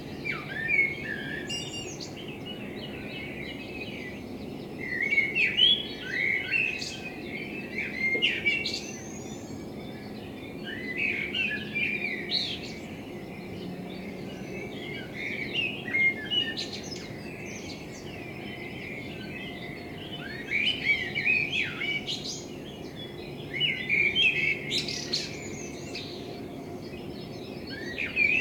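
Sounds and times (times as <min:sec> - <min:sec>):
common blackbird song warbled phrases: 0:00.1 - 0:28.3.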